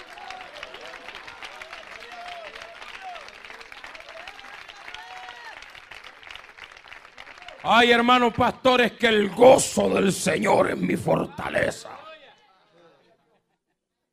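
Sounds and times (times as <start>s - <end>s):
applause: 0.0s - 9.2s
speech: 7.6s - 12.0s.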